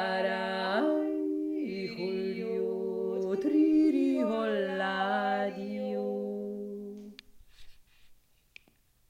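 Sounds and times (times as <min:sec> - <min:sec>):
deep voice yodeling: 0:00.0 - 0:06.5.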